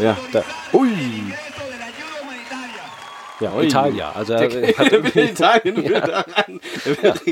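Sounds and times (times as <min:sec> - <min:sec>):
speech: 0:00.0 - 0:01.4, 0:03.4 - 0:07.2
crowd applause: 0:00.0 - 0:07.0
laughter: 0:03.7 - 0:07.2.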